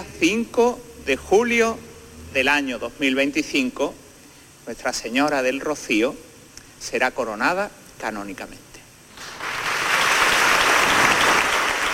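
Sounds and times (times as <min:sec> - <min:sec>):
speech: 0:00.0 - 0:04.0, 0:04.7 - 0:08.6
crowd applause: 0:09.2 - 0:11.9.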